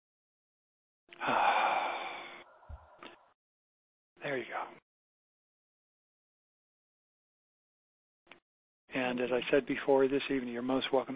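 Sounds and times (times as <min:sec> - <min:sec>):
speech: 0:01.1 - 0:01.6, 0:09.1 - 0:11.1
person breathing during a guided relaxation exercise: 0:01.2 - 0:03.4.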